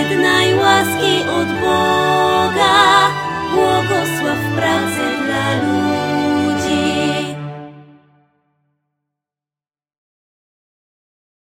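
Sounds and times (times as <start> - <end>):
full vocal hymn: 0.0 - 7.8.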